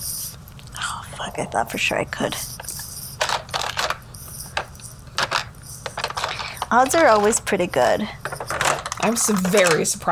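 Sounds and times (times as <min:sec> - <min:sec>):
speech: 0:01.4 - 0:02.7, 0:06.7 - 0:08.4, 0:09.0 - 0:10.1
rummaging through a drawer: 0:05.2 - 0:10.1.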